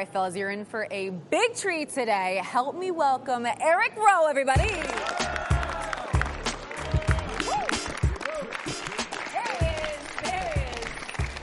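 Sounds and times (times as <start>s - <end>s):
speech: 0.0s - 5.2s
audience applause: 4.6s - 11.4s
audience whoops and cheering voices: 4.8s - 8.6s, 9.3s - 10.9s.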